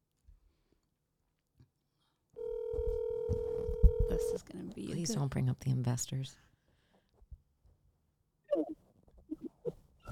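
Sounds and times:
telephone ringing for an incoming call: 2.4 - 4.4
speech: 4.1 - 6.5.

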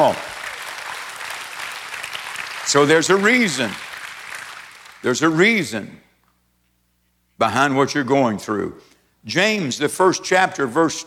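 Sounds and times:
audience clapping hands: 0.0 - 5.4
speech: 2.7 - 3.9, 5.0 - 6.1, 7.4 - 11.0.

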